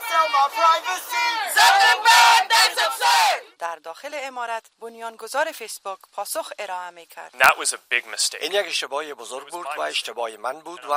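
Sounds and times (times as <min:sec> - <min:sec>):
protest crowd chanting outside a building: 0:00.0 - 0:03.5
speech: 0:00.2 - 0:10.9.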